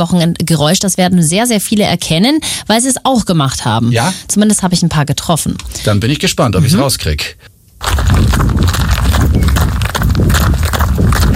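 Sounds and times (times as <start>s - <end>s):
speech: 0.0s - 8.8s
jogging footsteps: 7.8s - 11.3s.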